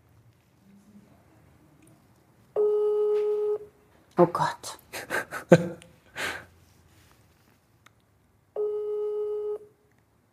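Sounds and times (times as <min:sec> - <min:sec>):
outgoing phone call ringing tone: 0:02.6 - 0:03.7, 0:08.6 - 0:09.7
speech: 0:04.2 - 0:04.8, 0:05.5 - 0:05.8.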